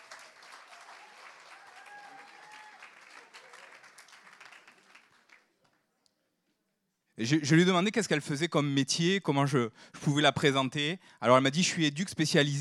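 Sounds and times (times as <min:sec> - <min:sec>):
audience applause: 0:00.0 - 0:05.6
speech: 0:07.2 - 0:12.5.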